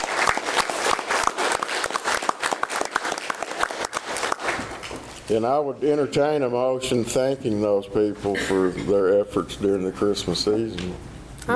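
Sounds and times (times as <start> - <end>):
audience round of applause: 0.0 - 5.1
speech: 5.3 - 11.5.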